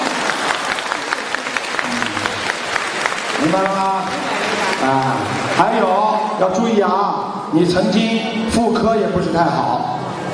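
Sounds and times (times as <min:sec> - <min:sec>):
audience applause: 0:00.0 - 0:06.4
speech: 0:03.5 - 0:10.0.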